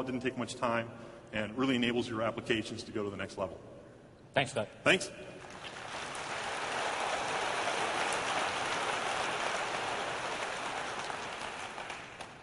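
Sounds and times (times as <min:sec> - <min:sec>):
speech: 0:00.0 - 0:03.8, 0:04.4 - 0:05.4
audience applause: 0:05.4 - 0:12.4.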